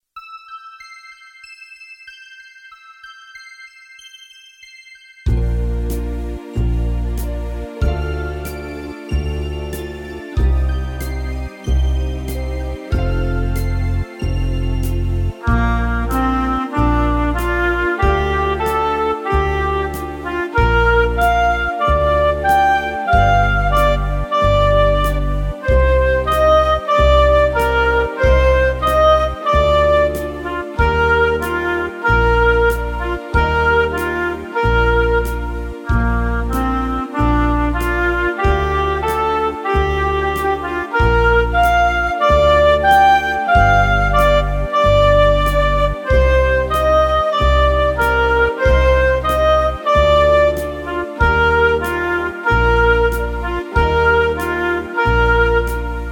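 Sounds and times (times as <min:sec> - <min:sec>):
Christmas ballad: 0:04.9 - 0:56.1.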